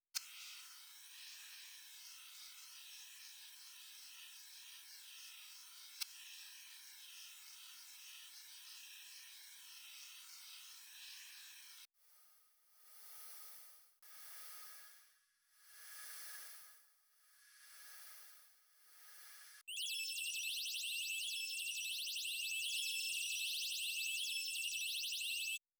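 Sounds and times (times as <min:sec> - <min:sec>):
laser noises: 0:19.7 - 0:25.6.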